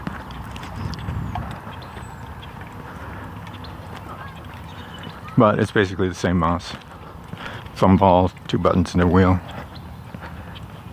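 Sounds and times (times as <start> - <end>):
footsteps of someone walking on the street: 0.0 - 10.9
speech: 5.4 - 9.6.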